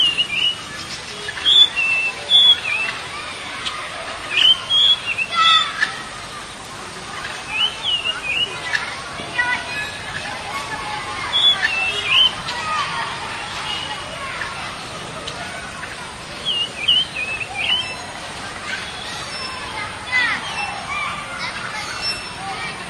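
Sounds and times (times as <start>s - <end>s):
Oriental magpie-robin singing whistled figures: 0.0s - 3.0s, 4.3s - 5.9s, 7.2s - 10.1s, 11.2s - 12.5s, 15.8s - 20.8s, 21.5s - 22.4s.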